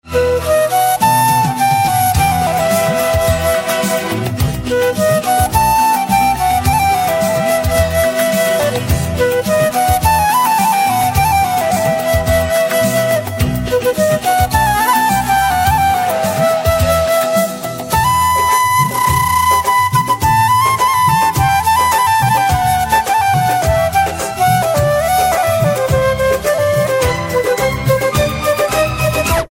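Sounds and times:
flute instrumental ringtone: 0.0s - 29.4s.

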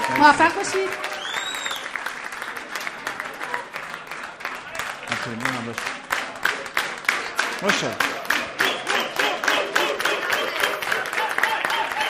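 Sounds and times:
class applauding in honour of its teacher: 0.0s - 12.0s
speech: 0.1s - 1.1s, 5.3s - 6.0s, 7.6s - 8.1s
laughter: 8.3s - 12.0s.

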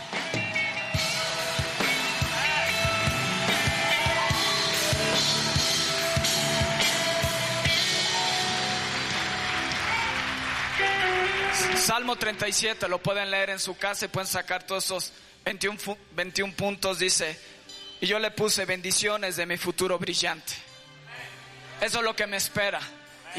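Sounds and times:
audience applause: 0.0s - 12.2s
speech: 12.1s - 20.7s, 21.8s - 23.3s.

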